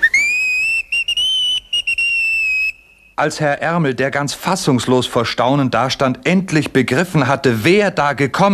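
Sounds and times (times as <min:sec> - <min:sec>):
locomotive giving short joyful whistles: 0:00.0 - 0:03.2
speech: 0:03.2 - 0:08.5.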